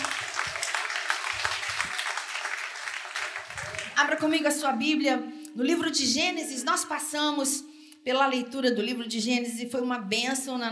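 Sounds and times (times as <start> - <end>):
audience applause: 0.0 - 4.0
speech: 4.0 - 10.7.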